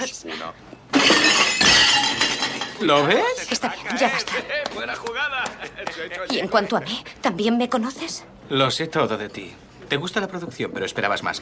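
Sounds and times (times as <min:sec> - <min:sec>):
waiter dropping a tray of plates on the floor: 0:00.9 - 0:02.9
speech: 0:02.8 - 0:11.4.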